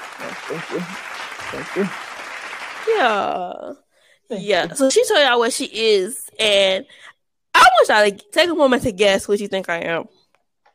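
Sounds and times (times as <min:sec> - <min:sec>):
applause: 0:00.0 - 0:03.4
speech: 0:00.2 - 0:02.1, 0:02.8 - 0:07.1, 0:07.8 - 0:10.2.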